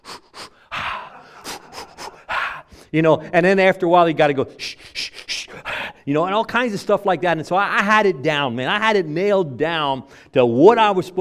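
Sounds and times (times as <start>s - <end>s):
man imitating Lamaze-style labor panting breaths: 0.0s - 3.3s, 4.6s - 6.1s
speech: 2.9s - 4.8s, 6.1s - 11.1s.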